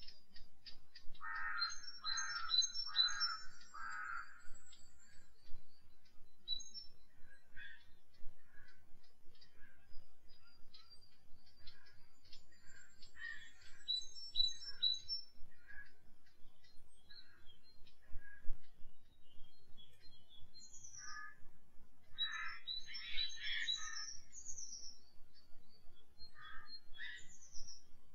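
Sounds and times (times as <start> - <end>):
forest birds in Italy: 0.0 - 28.1.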